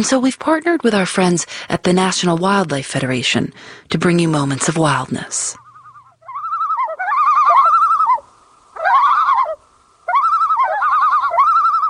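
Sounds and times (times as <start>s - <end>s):
speech: 0.0s - 5.6s
common loon calling: 5.6s - 11.8s.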